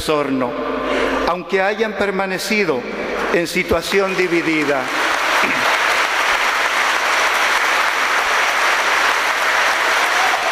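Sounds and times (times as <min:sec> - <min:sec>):
speech: 0:00.0 - 0:00.7, 0:01.3 - 0:05.6
audience applause: 0:04.0 - 0:10.4.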